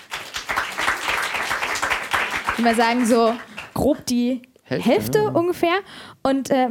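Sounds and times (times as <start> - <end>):
audience clapping: 0.0 - 4.0
speech: 2.6 - 6.7.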